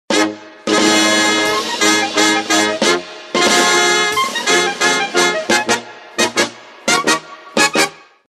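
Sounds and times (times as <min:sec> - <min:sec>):
fanfare ringtone: 0:00.7 - 0:07.9.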